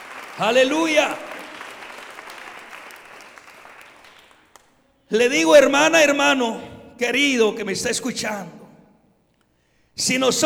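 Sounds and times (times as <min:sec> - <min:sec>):
audience applause: 0:00.0 - 0:04.8
speech: 0:00.4 - 0:01.3, 0:05.1 - 0:08.6, 0:10.0 - 0:10.4.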